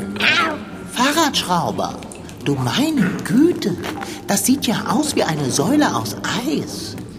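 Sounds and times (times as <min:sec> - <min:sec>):
cat meowing: 0:00.2 - 0:00.7
speech: 0:01.3 - 0:07.0.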